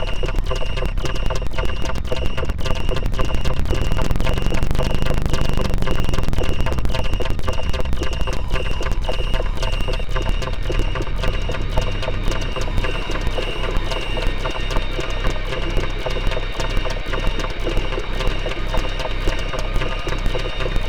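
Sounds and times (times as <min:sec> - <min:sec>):
menacing synth drone: 0:00.0 - 0:20.8.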